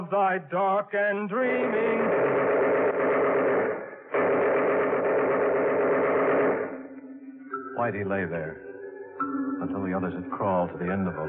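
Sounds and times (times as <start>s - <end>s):
speech: 0.0s - 5.6s, 7.8s - 8.6s, 9.6s - 11.2s
machine gun fire: 1.5s - 6.9s.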